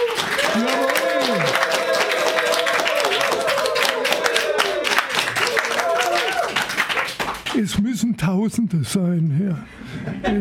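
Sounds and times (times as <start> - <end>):
live audience applause: 0.0 - 7.6
speech: 7.6 - 10.4.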